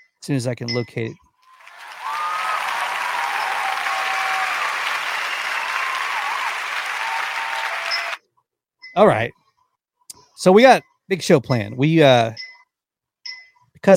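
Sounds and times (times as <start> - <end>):
speech: 0.2 - 1.2, 9.0 - 9.4, 10.4 - 12.4
crowd applause: 1.5 - 8.2
whistles: 1.5 - 8.2.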